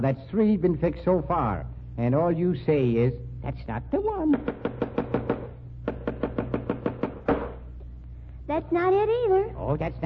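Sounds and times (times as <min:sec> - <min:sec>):
speech: 0:00.0 - 0:05.0, 0:08.5 - 0:10.0
low steady hum: 0:00.0 - 0:10.0
hammer pounding nails into moldings: 0:04.3 - 0:07.6.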